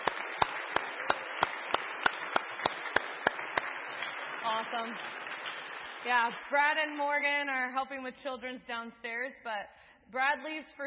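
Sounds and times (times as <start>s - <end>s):
audience applause: 0.0s - 6.8s
speech: 4.5s - 5.2s, 6.0s - 10.8s.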